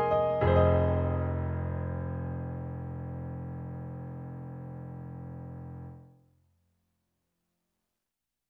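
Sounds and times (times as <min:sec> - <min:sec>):
Roland SR-JV80-09 Session sounds on XP-60 synthesizer: 0:00.0 - 0:06.0.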